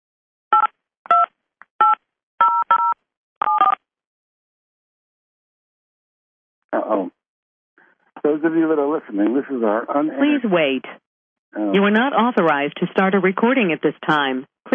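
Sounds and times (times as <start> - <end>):
telephone keypad tones entering a PIN: 0.6 - 3.8
speech: 6.7 - 7.2, 8.2 - 14.7.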